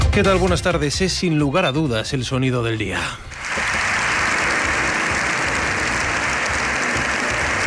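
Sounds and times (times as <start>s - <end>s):
speech: 0.2s - 3.6s
prolonged applause and ovation in parliament: 3.3s - 7.6s.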